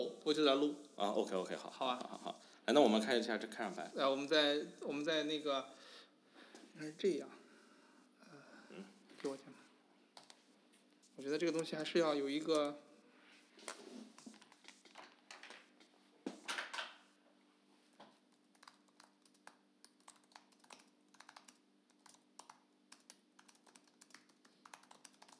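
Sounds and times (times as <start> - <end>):
speech: 0.2 - 5.9, 6.8 - 7.4, 8.7 - 9.6, 11.2 - 12.8
typing on a computer keyboard: 18.3 - 25.3.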